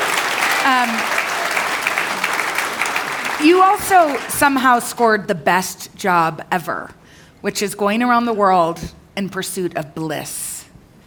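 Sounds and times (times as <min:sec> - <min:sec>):
audience applause: 0:00.0 - 0:04.6
speech: 0:00.7 - 0:01.2, 0:03.4 - 0:10.5.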